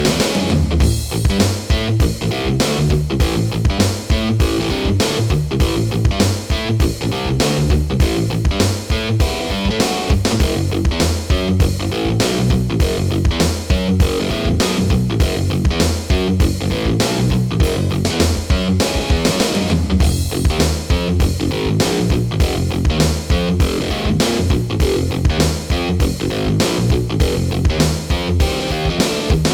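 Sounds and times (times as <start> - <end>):
chaotic action guitar music: 0.0 - 29.5.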